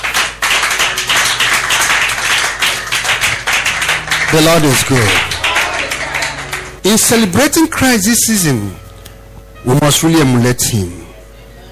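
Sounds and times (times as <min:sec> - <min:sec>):
audience clapping: 0:00.0 - 0:07.4
speech: 0:04.3 - 0:05.4, 0:06.8 - 0:08.8, 0:09.6 - 0:11.1.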